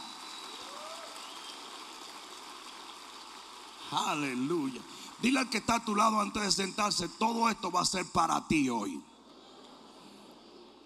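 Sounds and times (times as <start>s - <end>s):
audience applause: 0.0s - 6.3s
speech: 3.9s - 9.1s.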